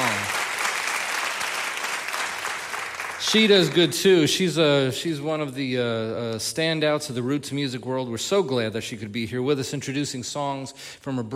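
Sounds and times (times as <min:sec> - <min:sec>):
audience applause: 0:00.0 - 0:04.0
speech: 0:03.2 - 0:11.3.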